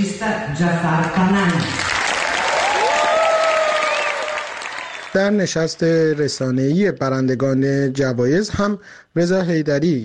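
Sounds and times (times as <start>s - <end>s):
speech: 0.2s - 1.9s, 5.2s - 10.0s
standing ovation in the main hall of the Venice Film Festival: 1.6s - 6.2s.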